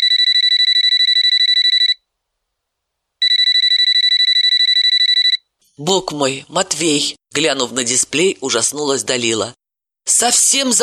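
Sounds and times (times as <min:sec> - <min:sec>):
mobile phone ringing: 0:00.0 - 0:02.0, 0:03.2 - 0:05.5
speech: 0:05.8 - 0:10.8.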